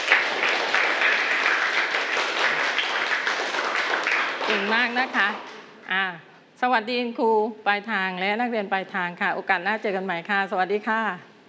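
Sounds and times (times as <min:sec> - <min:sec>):
students applauding: 0:00.0 - 0:05.7
speech: 0:04.5 - 0:11.3.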